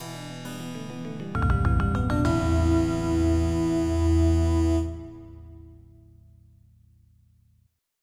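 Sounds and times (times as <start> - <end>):
game over jingle: 1.4 - 5.0.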